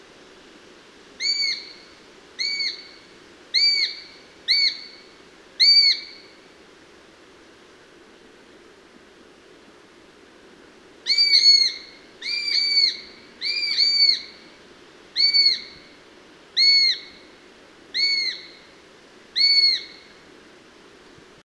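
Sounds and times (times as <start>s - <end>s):
sparrowhawk calling: 1.2s - 1.8s, 2.4s - 2.9s, 3.6s - 5.0s, 11.1s - 14.4s, 15.2s - 15.8s, 16.6s - 17.2s, 18.0s - 18.6s, 19.4s - 20.0s.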